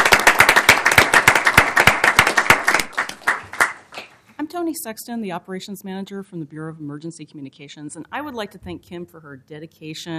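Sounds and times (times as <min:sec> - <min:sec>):
audience applause: 0:00.0 - 0:04.1
speech: 0:04.6 - 0:10.1.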